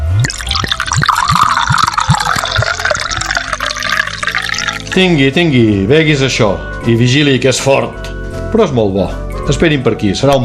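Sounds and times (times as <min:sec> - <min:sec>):
Marc de Banyuls poured from a minibar bottle into a glass: 0:00.0 - 0:05.1
speech: 0:05.0 - 0:10.4.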